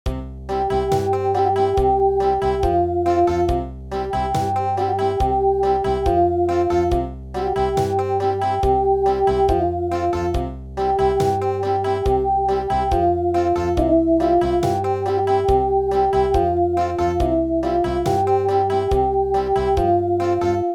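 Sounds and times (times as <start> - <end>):
country music: 0.1 - 20.7.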